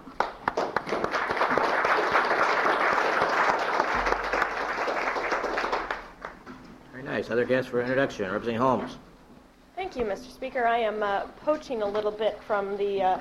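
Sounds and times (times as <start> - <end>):
applause in a legislative chamber welcoming guests: 0.0 - 6.4
speech: 7.3 - 9.1, 9.9 - 13.1.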